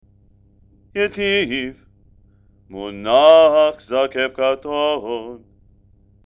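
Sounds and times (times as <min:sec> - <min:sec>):
person chanting haftarah with trope: 0:01.0 - 0:01.8, 0:02.7 - 0:05.4.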